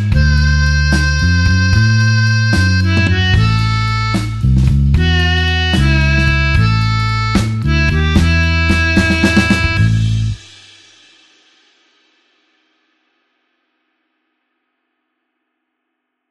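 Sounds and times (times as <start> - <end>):
slow blues harmonica in A: 0.0 - 10.4.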